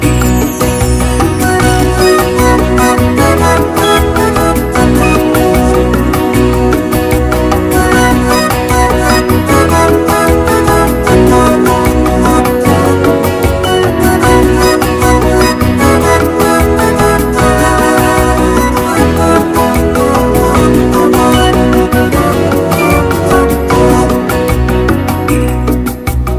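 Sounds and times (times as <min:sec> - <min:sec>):
pop music: 0:00.0 - 0:26.3.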